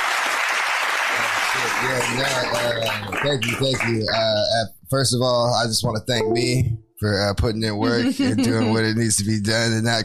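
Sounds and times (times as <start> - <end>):
round of applause: 0.0 - 4.4
speech: 1.6 - 10.0.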